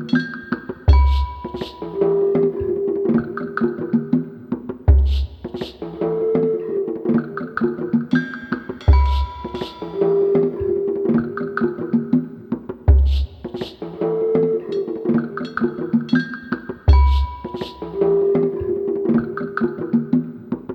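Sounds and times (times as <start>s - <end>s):
rhythmic percussion: 0.0s - 20.7s.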